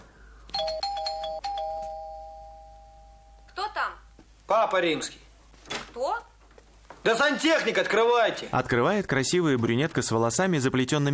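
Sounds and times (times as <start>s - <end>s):
electronic doorbell chiming: 0.5s - 3.5s
speech: 4.5s - 5.2s, 6.0s - 6.3s, 7.0s - 11.1s.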